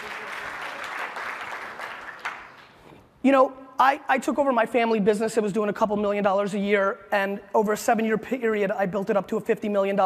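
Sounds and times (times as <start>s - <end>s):
audience applause: 0.0s - 2.8s
speech: 3.2s - 10.0s.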